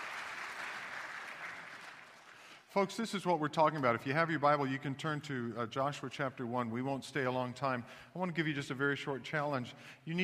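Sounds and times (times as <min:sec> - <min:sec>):
crowd clapping: 0:00.0 - 0:02.7
speech: 0:02.8 - 0:10.2.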